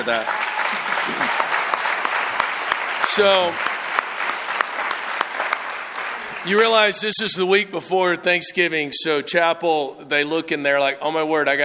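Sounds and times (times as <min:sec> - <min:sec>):
speech: 0:00.0 - 0:01.4, 0:03.2 - 0:03.7, 0:06.4 - 0:11.6
audience applause: 0:00.0 - 0:07.4.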